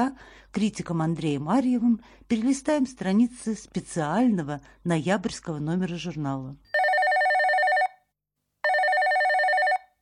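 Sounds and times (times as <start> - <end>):
speech: 0.0 - 6.7
telephone bell ringing: 6.7 - 10.0.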